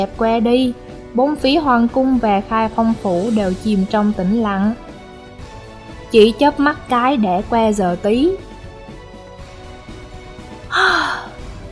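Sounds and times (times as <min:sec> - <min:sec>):
speech: 0:00.0 - 0:04.8, 0:06.1 - 0:08.5
long breathy yawn: 0:10.7 - 0:11.4.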